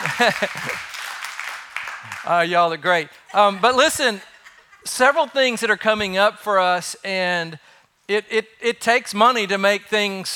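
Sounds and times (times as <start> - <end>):
laughter: 0.0 - 1.0, 3.3 - 5.6
audience clapping: 0.0 - 2.7
speech: 0.2 - 0.9, 2.0 - 10.3.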